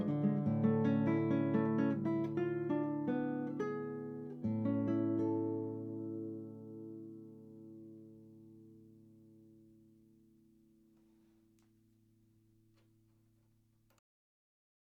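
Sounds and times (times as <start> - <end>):
prelude recorded with Blumlein ribbon microphones: 0.0 - 9.4.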